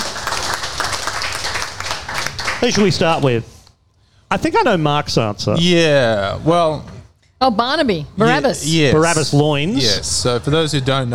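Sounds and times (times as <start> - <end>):
audience applause: 0.0 - 3.2
speech: 2.6 - 3.6, 4.3 - 11.1.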